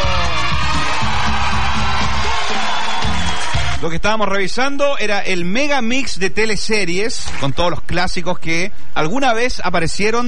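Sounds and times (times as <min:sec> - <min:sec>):
applause: 0:00.0 - 0:03.8, 0:07.2 - 0:07.6
crowd cheering: 0:00.0 - 0:03.9
speech: 0:03.8 - 0:10.2.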